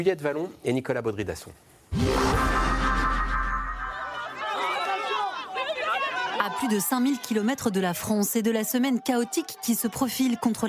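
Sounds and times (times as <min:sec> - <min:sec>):
speech: 0:00.0 - 0:02.5, 0:06.6 - 0:10.6
crowd chatter and cheering greeting an arriving president: 0:02.3 - 0:10.6.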